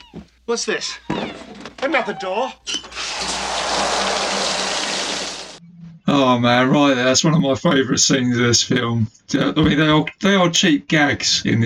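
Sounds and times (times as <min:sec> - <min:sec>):
speech: 0:00.1 - 0:02.8, 0:06.1 - 0:11.6
water pouring over a man, soaking him: 0:02.9 - 0:05.6.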